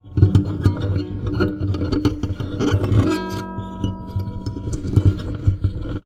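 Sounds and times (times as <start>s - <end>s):
classical guitar played with extended technique: 0.0s - 6.0s.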